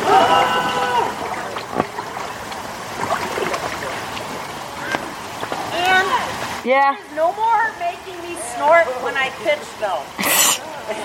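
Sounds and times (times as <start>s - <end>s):
boat paddle gurgling and splashing in water: 0.0s - 6.7s
speech: 6.7s - 11.0s.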